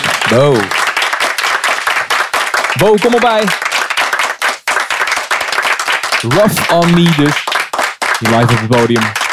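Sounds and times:
audience applause: 0.0s - 9.3s
speech: 0.3s - 0.8s, 2.8s - 3.6s, 6.2s - 7.4s, 8.2s - 9.2s.

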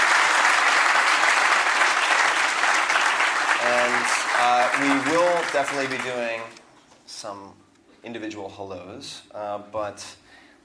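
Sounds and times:
audience applause: 0.0s - 6.5s
speech: 3.7s - 10.6s.

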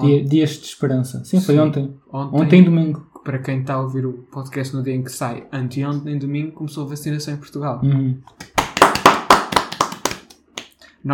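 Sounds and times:
speech: 0.0s - 8.5s
hands clapping: 8.3s - 10.8s.

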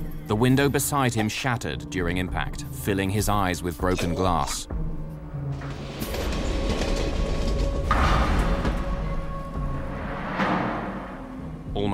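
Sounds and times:
speech: 0.3s - 4.8s, 11.8s - 11.9s
deep rail rumble of a freight train caboose: 5.4s - 11.9s
heavy metallic jolts and clanks: 5.5s - 11.4s.

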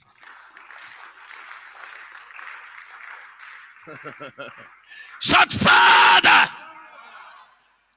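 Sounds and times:
audience clapping: 0.0s - 5.7s
laughter: 3.8s - 4.8s
speech: 3.9s - 6.6s.

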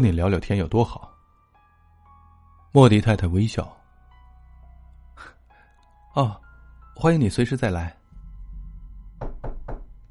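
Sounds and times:
speech: 0.0s - 1.1s, 2.8s - 3.8s, 6.2s - 6.4s, 7.0s - 8.0s
urgent knocking on front door: 8.1s - 10.0s.

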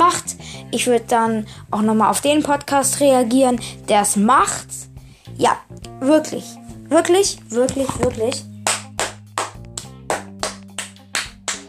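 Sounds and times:
speech: 0.7s - 4.8s, 5.4s - 8.5s
hand clapping: 7.7s - 11.6s.

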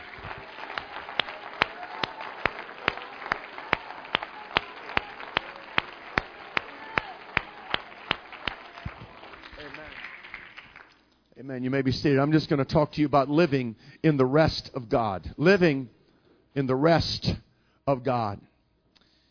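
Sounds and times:
audience clapping hands: 0.0s - 11.1s
speech: 11.4s - 18.5s.

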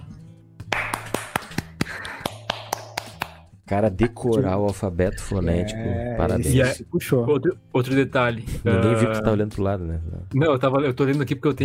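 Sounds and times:
hands clapping: 0.6s - 3.6s
speech: 3.7s - 11.6s.

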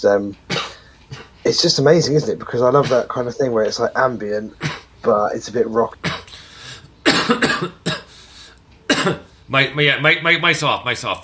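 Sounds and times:
speech: 0.0s - 0.5s, 1.5s - 6.2s, 9.0s - 11.2s
person with a parched dry throat coughing: 0.5s - 1.4s, 4.6s - 5.0s, 6.0s - 8.2s, 8.9s - 9.3s.

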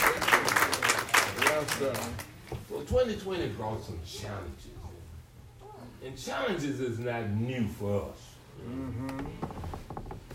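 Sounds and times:
audience clapping hands: 0.0s - 2.6s
speech: 1.8s - 4.8s, 6.0s - 9.7s.

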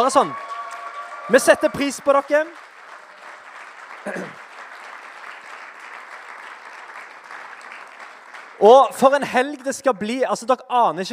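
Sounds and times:
speech: 0.0s - 0.5s, 1.3s - 2.6s, 4.0s - 4.4s, 8.6s - 11.1s
crowd clapping: 0.0s - 9.6s.

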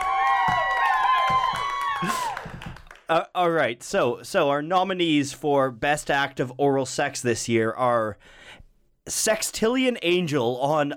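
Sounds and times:
crowd cheering and whooping: 0.0s - 2.9s
scattered clapping: 0.0s - 3.1s
speech: 2.0s - 2.2s, 3.1s - 10.9s.

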